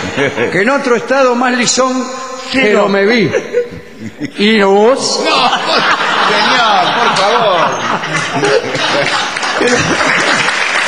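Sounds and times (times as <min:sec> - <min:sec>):
laughter: 0:00.0 - 0:00.9, 0:02.6 - 0:10.8
speech: 0:00.2 - 0:05.9, 0:07.9 - 0:10.4
crowd applauding: 0:05.6 - 0:10.8.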